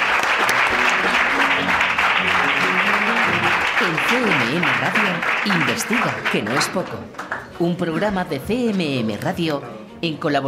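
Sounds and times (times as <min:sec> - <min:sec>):
audience applause: 0:00.0 - 0:07.4
speech: 0:03.9 - 0:10.4.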